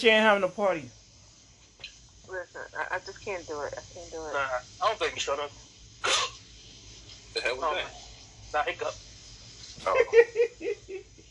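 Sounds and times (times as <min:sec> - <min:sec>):
speech: 0:00.0 - 0:01.0, 0:01.8 - 0:06.3, 0:07.4 - 0:09.0, 0:09.8 - 0:11.1
low steady hum: 0:00.0 - 0:11.2
loud painful-sounding sneeze: 0:06.0 - 0:06.4
laughter: 0:09.8 - 0:11.2.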